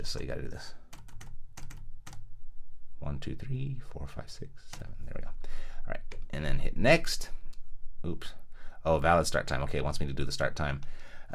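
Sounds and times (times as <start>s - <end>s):
speech: 0.0s - 0.8s, 3.0s - 7.4s, 8.0s - 11.3s
typing on a computer keyboard: 0.9s - 2.2s.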